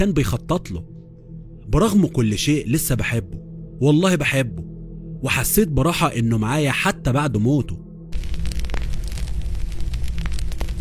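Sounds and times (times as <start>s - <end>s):
speech: 0.0s - 0.9s, 1.7s - 7.8s
fire crackling and roaring: 8.1s - 10.7s.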